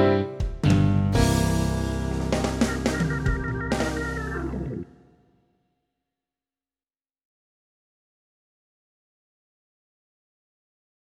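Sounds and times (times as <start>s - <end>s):
recorder playing blues: 1.2s - 4.9s.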